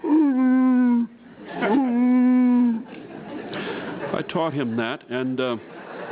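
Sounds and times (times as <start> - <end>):
human voice imitating an elk call: 0.0 - 2.9
laughter: 1.4 - 5.0, 5.6 - 6.0
soft breath: 3.5 - 4.0
speech: 4.3 - 5.8.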